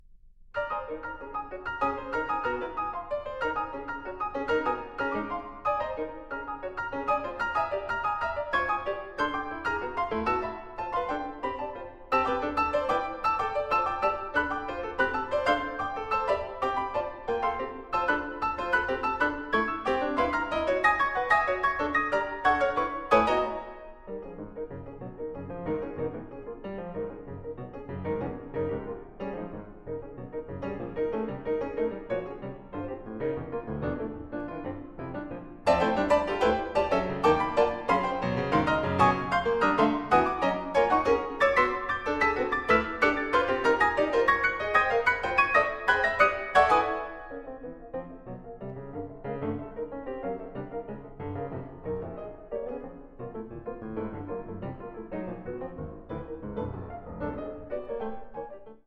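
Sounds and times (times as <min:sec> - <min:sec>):
piano etudes: 0:00.0 - 0:58.8.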